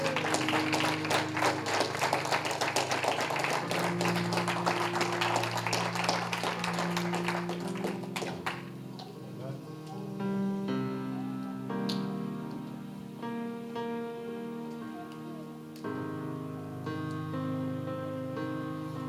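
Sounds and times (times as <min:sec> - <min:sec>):
crowd applauding: 0:00.0 - 0:08.8
sustained organ-like chords: 0:00.0 - 0:19.0.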